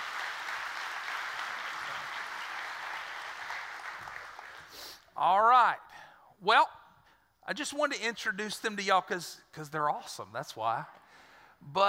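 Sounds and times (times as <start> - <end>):
audience hand clapping: 0.0 - 5.1
speech: 5.2 - 6.8, 7.5 - 11.0, 11.6 - 11.8.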